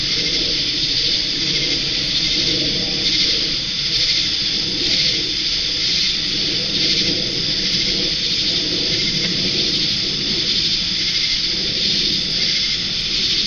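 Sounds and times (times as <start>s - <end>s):
cicadas buzzing: 0.0s - 13.4s
crickets chirping: 0.0s - 13.4s
frogs croaking in ponds: 0.0s - 13.4s.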